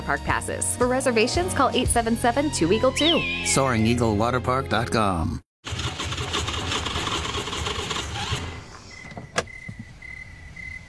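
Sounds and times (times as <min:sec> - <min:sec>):
speech: 0:00.1 - 0:05.8
car engine sputtering out of gas: 0:05.7 - 0:08.8.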